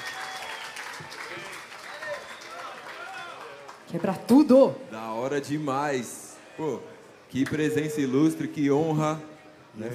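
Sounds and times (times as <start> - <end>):
audience cheering: 0.0 - 3.8
audience applause: 0.0 - 4.3
speech: 3.9 - 9.9.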